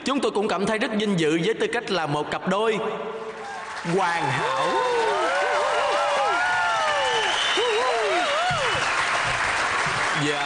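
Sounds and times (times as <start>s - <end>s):
speech: 0.1s - 3.2s, 3.8s - 5.1s
audience applause: 3.4s - 10.4s.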